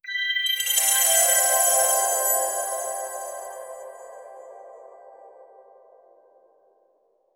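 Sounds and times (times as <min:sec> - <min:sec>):
cute sparkle sound effect: 0:00.0 - 0:04.1.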